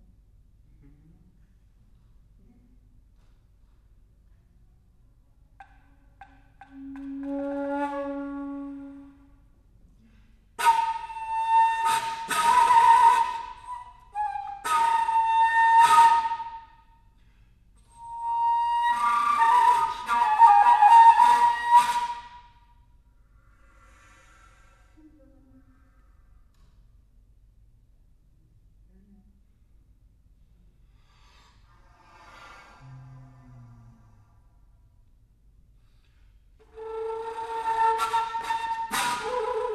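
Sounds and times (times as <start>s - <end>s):
alto flute: 6.2s - 9.5s, 10.6s - 16.9s, 17.8s - 22.7s, 36.6s - 39.7s.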